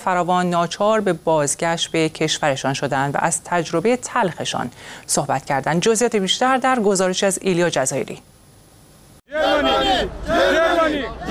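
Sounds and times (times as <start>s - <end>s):
speech: 0.0s - 8.3s
refugees shouting at border: 9.3s - 11.3s.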